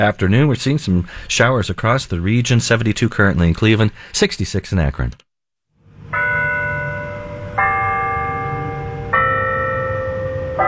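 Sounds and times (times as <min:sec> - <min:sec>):
speech: 0:00.0 - 0:05.3
bells chiming the hour: 0:05.9 - 0:10.6.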